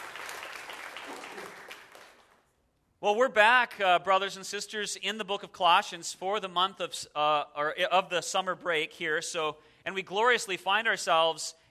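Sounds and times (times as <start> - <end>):
church congregation applause thanking a volunteer: 0.0 - 2.5
speech: 3.0 - 11.6.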